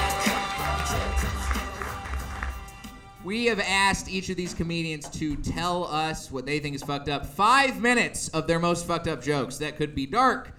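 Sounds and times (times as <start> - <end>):
audience clapping: 0.0 - 3.2
speech: 3.3 - 10.5.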